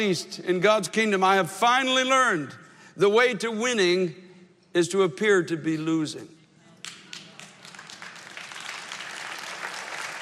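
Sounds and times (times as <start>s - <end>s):
speech: 0.0s - 6.4s
audience clapping: 6.8s - 10.1s.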